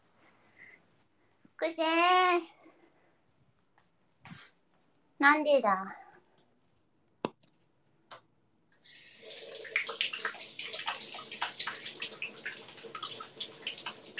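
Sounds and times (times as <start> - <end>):
speech: 1.6 - 2.6, 5.2 - 6.0
running tap water splashing: 8.8 - 14.1.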